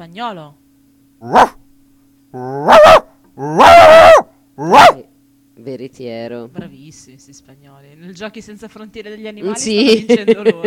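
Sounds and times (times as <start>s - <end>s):
speech: 0.0s - 0.6s, 1.2s - 1.6s, 2.3s - 3.7s, 5.8s - 10.6s
small dog barking: 1.2s - 1.6s, 2.4s - 5.1s.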